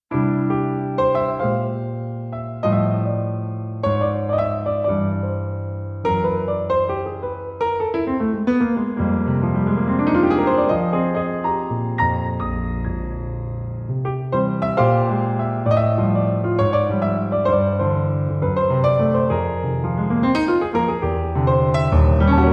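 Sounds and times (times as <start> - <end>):
piano: 0.0 - 22.5.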